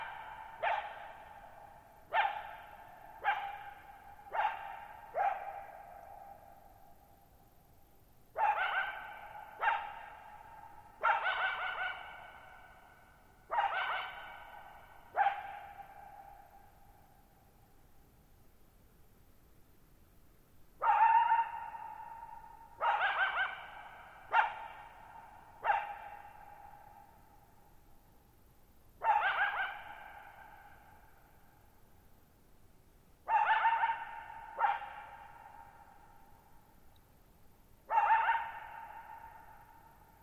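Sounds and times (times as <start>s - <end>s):
coyote barking: 0.0s - 6.4s, 8.4s - 12.9s, 13.5s - 16.6s, 20.8s - 27.2s, 29.0s - 31.4s, 33.2s - 36.3s, 37.8s - 40.1s.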